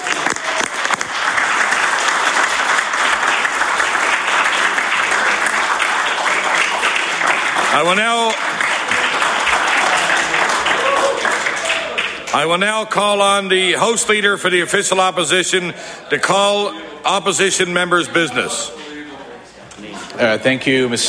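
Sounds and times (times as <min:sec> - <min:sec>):
applause from the floor of a legislative chamber: 0:00.0 - 0:15.3
speech: 0:07.8 - 0:08.4, 0:12.4 - 0:18.9, 0:20.2 - 0:21.0.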